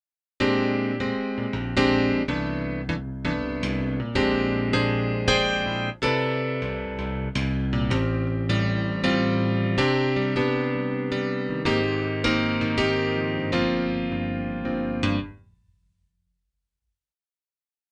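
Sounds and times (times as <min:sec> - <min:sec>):
Yamaha CP70 electric grand piano: 0:00.4 - 0:15.4.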